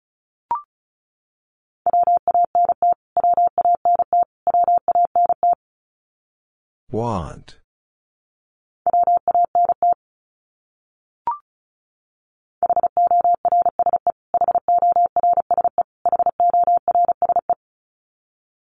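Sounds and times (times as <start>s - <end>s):
Morse code beeps: 1.9s - 5.6s, 8.9s - 10.0s, 12.6s - 17.5s
speech: 6.9s - 7.6s.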